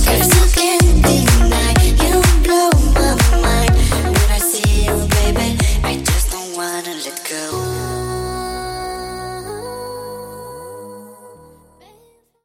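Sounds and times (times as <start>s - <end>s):
bootleg rework dance track: 0.0s - 9.9s.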